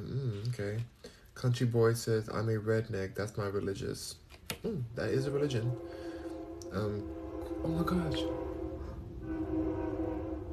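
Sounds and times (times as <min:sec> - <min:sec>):
speech: 0:00.6 - 0:06.1, 0:06.7 - 0:08.4
train horn beeping: 0:05.1 - 0:10.5.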